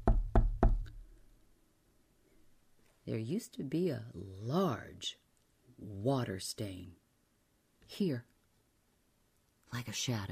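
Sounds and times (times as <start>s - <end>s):
knuckles tapping on a wall: 0.0s - 1.0s
speech: 3.1s - 5.2s, 5.8s - 7.0s, 7.9s - 8.3s, 9.7s - 10.3s.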